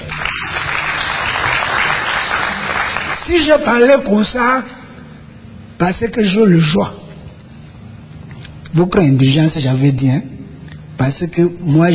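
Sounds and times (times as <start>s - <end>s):
audience applause: 0.0s - 3.3s
speech: 3.3s - 4.8s, 5.8s - 7.0s, 8.7s - 10.3s, 11.0s - 11.9s.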